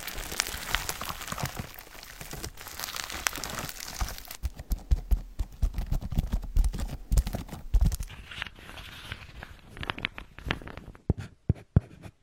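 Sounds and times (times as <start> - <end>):
crinkly tearing noise of massaging hands on water flow: 0.0 - 4.6, 5.8 - 11.0.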